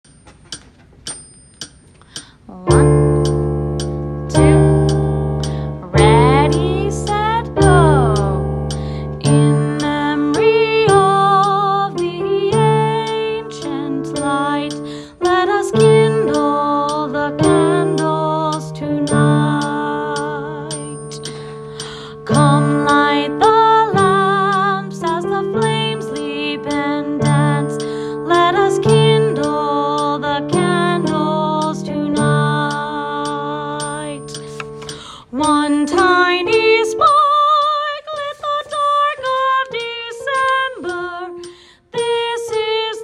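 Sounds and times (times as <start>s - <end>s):
soprano singing: 2.5s - 43.0s.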